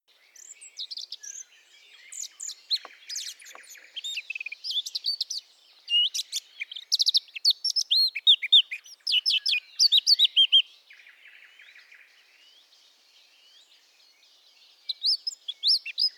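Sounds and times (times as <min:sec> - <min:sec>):
Eurasian blackcap singing: 0:00.1 - 0:10.7, 0:14.8 - 0:16.1.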